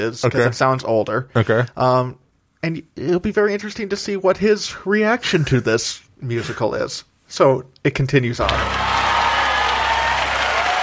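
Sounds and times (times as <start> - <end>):
speech: 0.0 - 8.9
audience applause: 8.4 - 10.8.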